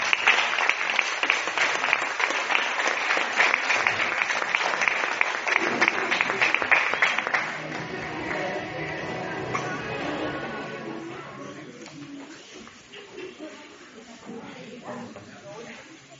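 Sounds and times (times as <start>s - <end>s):
audience applauding: 0.0s - 9.8s.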